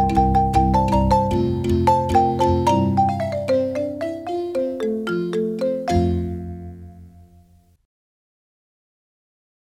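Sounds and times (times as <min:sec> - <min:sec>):
indigenous marimba son music: 0:00.0 - 0:07.6.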